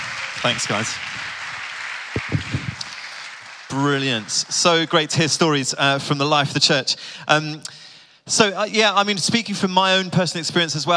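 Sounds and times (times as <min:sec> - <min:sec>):
audience applause: 0:00.0 - 0:05.7
speech: 0:00.4 - 0:01.3, 0:03.7 - 0:10.9.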